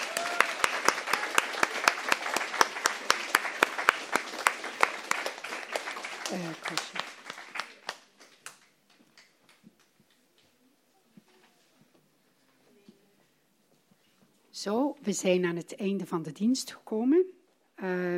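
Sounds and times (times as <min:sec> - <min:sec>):
church congregation clapping in rhythm for a small orchestra: 0:00.0 - 0:10.2
speech: 0:06.3 - 0:07.1, 0:14.6 - 0:18.1.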